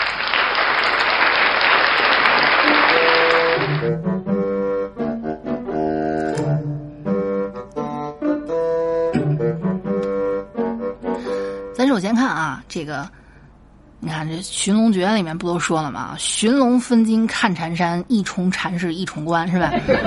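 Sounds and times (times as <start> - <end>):
applause: 0.0 - 3.9
bright bouncy tonal melody: 2.7 - 11.8
speech: 12.0 - 13.2, 14.0 - 20.0
laughter: 19.6 - 20.0.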